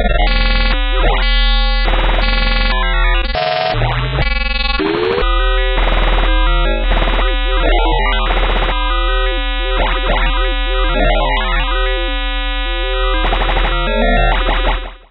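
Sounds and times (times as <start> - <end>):
atmospheric effects: 0.2 - 15.1.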